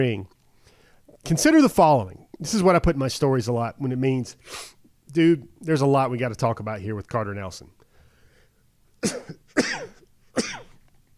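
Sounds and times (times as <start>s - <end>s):
speech: 0.0s - 0.4s, 1.2s - 7.8s, 9.0s - 9.9s
person sneezing: 9.0s - 10.8s.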